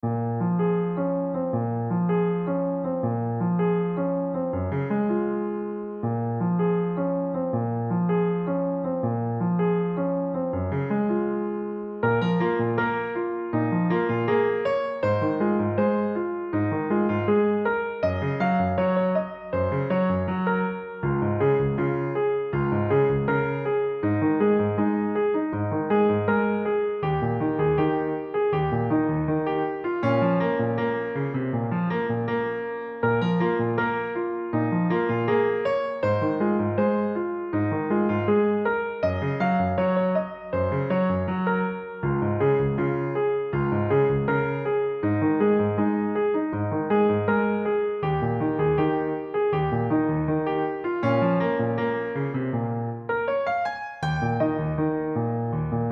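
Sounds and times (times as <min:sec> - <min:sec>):
solo piano: 0:00.0 - 0:55.9.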